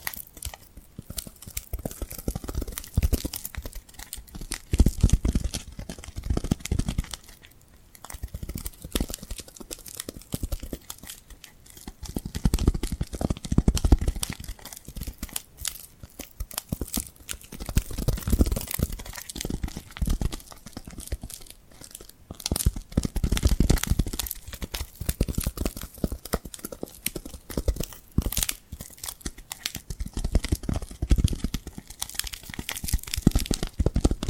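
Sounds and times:
glued hand sounds: 0.0s - 34.2s.

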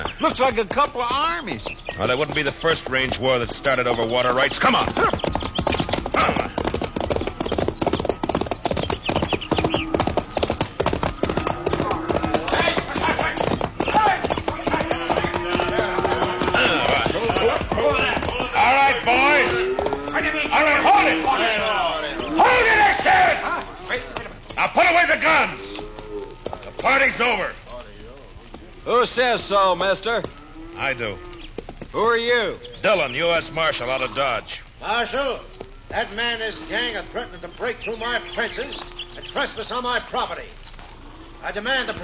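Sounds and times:
many horses' hooves of riders galloping: 0.0s - 42.0s
voices calling out: 0.0s - 42.0s
speech: 0.2s - 5.3s, 29.2s - 31.3s, 31.9s - 40.6s, 41.4s - 42.0s
horse whinnying: 4.5s - 24.4s.

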